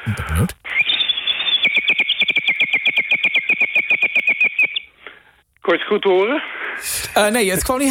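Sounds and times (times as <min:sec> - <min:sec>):
speech: 0:00.1 - 0:00.8, 0:05.7 - 0:07.8
antique water whistle warbling like a bird: 0:00.7 - 0:04.9.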